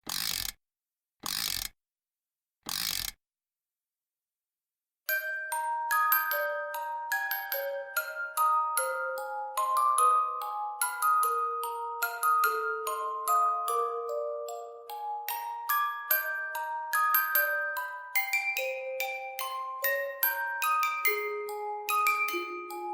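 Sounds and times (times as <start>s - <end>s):
lullaby music: 5.1s - 22.9s.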